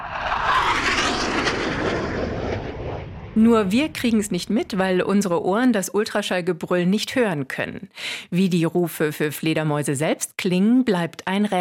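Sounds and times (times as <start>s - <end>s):
jet aircraft taking off: 0.0s - 5.5s
speech: 3.4s - 11.5s.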